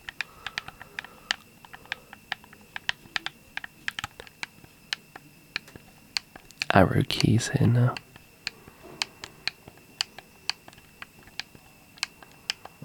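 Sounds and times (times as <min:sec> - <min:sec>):
game controller joysticks snapping: 0:00.0 - 0:07.3, 0:07.9 - 0:12.8
speech: 0:06.8 - 0:08.1.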